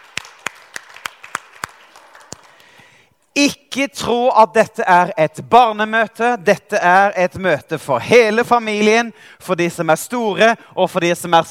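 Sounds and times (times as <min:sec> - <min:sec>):
audience clapping: 0:00.0 - 0:03.0
speech: 0:03.4 - 0:11.5.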